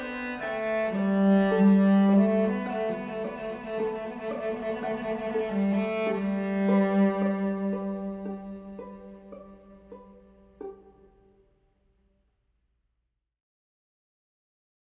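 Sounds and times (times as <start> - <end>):
slow string ensemble piece: 0.0 - 11.4.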